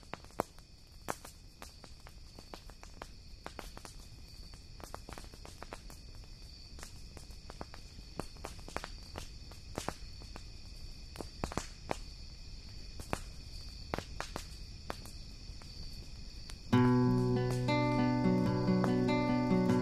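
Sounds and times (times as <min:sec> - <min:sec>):
bonfire crackling and popping: 0:00.0 - 0:19.8
thin steady high whine of insects: 0:12.0 - 0:19.8.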